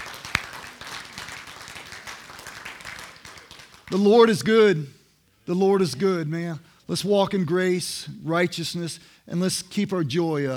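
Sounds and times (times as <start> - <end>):
audience applauding: 0.0 - 4.0
sharp single clap: 0.0 - 4.0
speech: 3.9 - 10.5.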